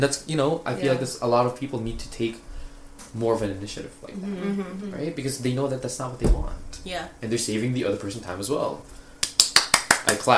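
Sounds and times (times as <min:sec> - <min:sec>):
speech: 0:00.0 - 0:02.5, 0:03.1 - 0:09.0, 0:10.0 - 0:10.3
hand clap: 0:09.2 - 0:10.3.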